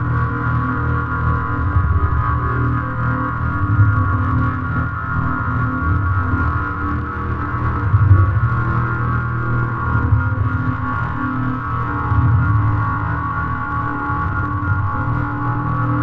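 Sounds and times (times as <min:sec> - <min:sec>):
ambience: 0:00.0 - 0:16.0.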